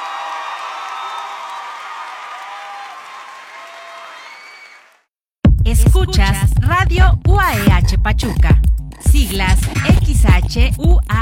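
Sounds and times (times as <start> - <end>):
audience applause: 0.0 - 5.1
whoops and cheers: 0.0 - 5.1
speech: 5.7 - 11.2.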